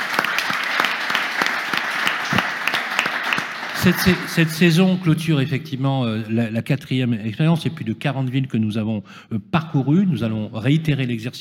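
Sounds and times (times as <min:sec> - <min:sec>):
audience applause: 0:00.0 - 0:04.8
speech: 0:03.8 - 0:11.3.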